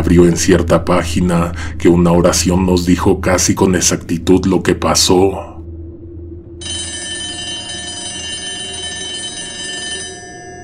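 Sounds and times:
low hum: 0.0s - 10.6s
speech: 0.1s - 5.5s
office telephone ringing: 6.6s - 10.6s.

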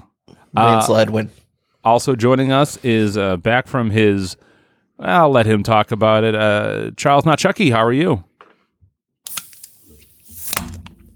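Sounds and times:
speech: 0.5s - 8.3s
soda can opening: 9.3s - 11.1s.

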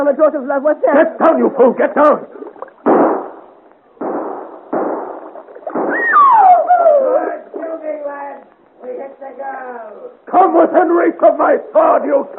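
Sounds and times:
speech: 0.0s - 2.4s, 9.1s - 12.3s
musket shots: 2.8s - 6.3s.

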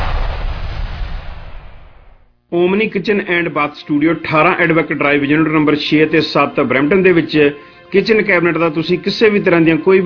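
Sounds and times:
firecrackers exploding in a Diwali fireworks ad: 0.0s - 2.2s
speech: 2.5s - 10.0s.

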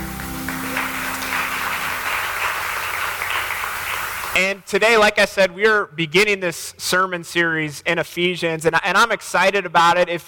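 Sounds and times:
audience applause: 0.0s - 4.4s
speech: 4.4s - 10.2s.

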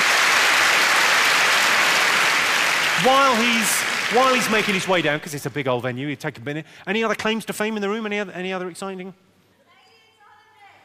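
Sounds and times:
audience applause in a big venue greeting a funeral director: 0.0s - 5.4s
speech: 3.0s - 9.2s.

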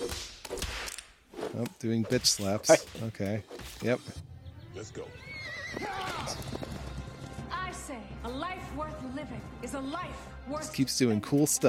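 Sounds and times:
speech: 1.6s - 6.6s, 7.9s - 11.6s
horse whinnying: 5.0s - 6.9s
horse hooves: 5.2s - 7.8s.

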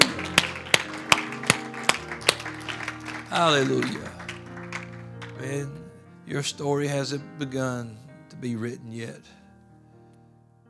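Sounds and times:
audience hand clapping: 0.0s - 5.9s
laughter: 0.0s - 7.8s
speech: 3.3s - 4.2s, 5.4s - 9.4s.

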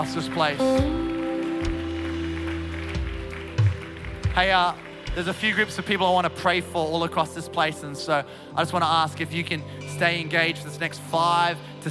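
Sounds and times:
speech: 0.0s - 1.8s, 4.4s - 11.8s
crowd applause: 0.0s - 6.2s
sustained low musical tones: 0.0s - 11.8s.

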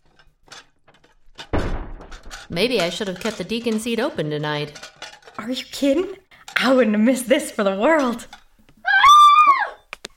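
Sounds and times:
speech: 2.5s - 8.4s
woman screaming: 8.8s - 9.9s.

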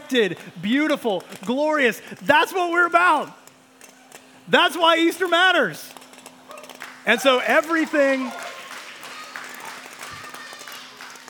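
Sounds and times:
speech: 0.1s - 3.4s, 4.5s - 6.0s, 7.0s - 8.4s
audience clapping during a church talk: 6.6s - 11.2s.

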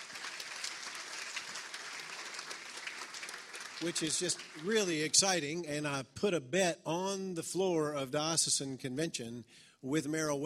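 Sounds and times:
audience applause: 0.0s - 5.4s
speech: 3.8s - 10.4s.

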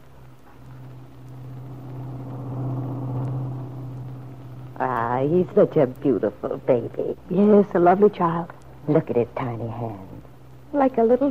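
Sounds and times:
car driving on the road: 0.0s - 6.1s
speech: 4.8s - 11.2s.

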